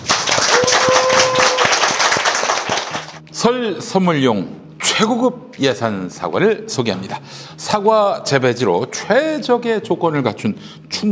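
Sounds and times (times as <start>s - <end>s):
hands clapping: 0.0s - 3.2s
speech: 3.4s - 11.0s.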